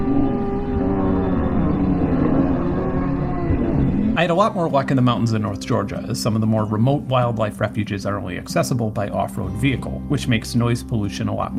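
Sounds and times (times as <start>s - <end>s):
laughing gull calls slowed down: 0.0s - 4.3s
speech: 4.2s - 11.5s.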